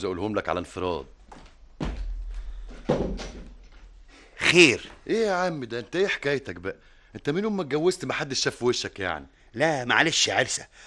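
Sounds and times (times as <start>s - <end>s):
speech: 0.0s - 1.2s, 4.5s - 10.8s
door being closed: 1.8s - 3.7s.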